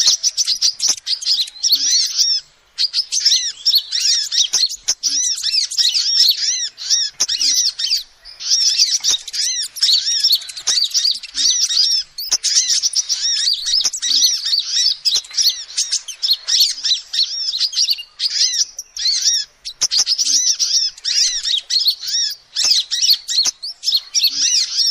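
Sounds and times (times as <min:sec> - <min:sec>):
lovebird chattering: 0:00.0 - 0:24.8.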